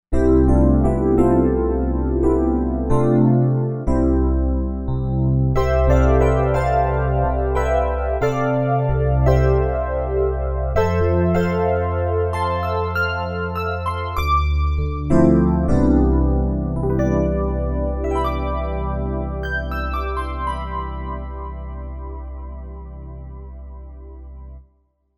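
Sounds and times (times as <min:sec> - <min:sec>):
piano: 0:00.1 - 0:24.7.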